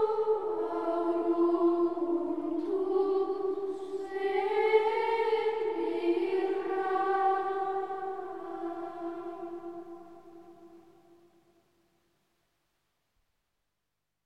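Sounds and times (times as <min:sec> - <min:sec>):
choir singing an Ambrosian chant: 0:00.0 - 0:11.2.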